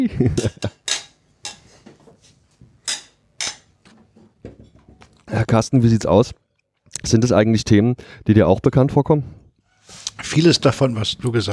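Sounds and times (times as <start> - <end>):
speech: 0.0 - 0.8, 5.3 - 6.4, 7.0 - 11.5
glasses clinking in a toast: 0.6 - 1.8.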